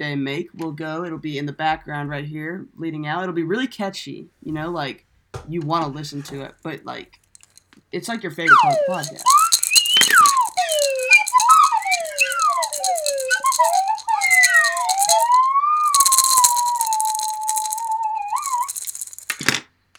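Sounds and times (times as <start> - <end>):
speech: 0.0 - 7.2, 7.9 - 9.4
maraca: 7.3 - 7.7, 8.4 - 19.5
slide whistle: 8.5 - 19.3.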